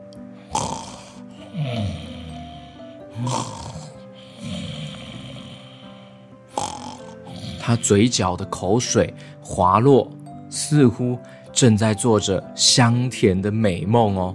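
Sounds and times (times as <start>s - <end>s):
loud rumbling snores: 0.4s - 8.1s
speech: 3.2s - 3.6s, 7.7s - 14.3s.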